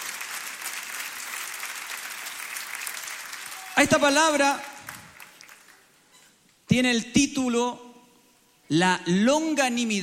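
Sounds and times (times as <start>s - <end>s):
audience applause: 0.0s - 5.8s
speech: 3.8s - 4.7s, 6.7s - 7.8s, 8.7s - 10.0s.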